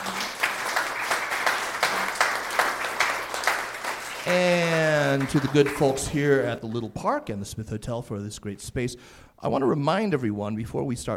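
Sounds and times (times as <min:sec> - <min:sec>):
warm round of applause: 0:00.0 - 0:06.6
speech: 0:04.2 - 0:11.1.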